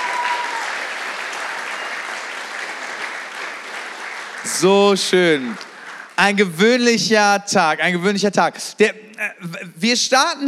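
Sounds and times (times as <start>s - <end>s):
audience applause: 0.0s - 6.8s
speech: 4.4s - 10.4s.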